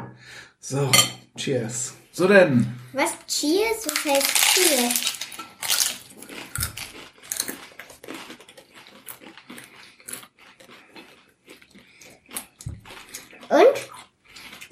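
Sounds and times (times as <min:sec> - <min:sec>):
speech: 0:00.3 - 0:05.2
chewing crispy tacos: 0:03.7 - 0:14.7
crunching bites into crispy tacos filled with vegetables and avocado: 0:03.7 - 0:14.7.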